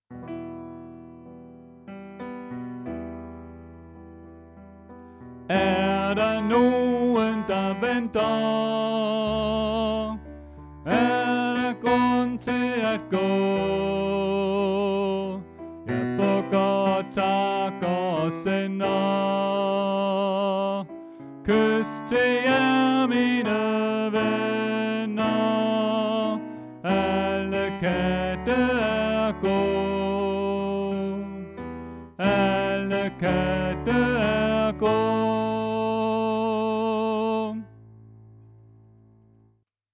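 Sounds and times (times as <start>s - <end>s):
tenor singing: 5.5s - 31.6s, 32.2s - 37.7s.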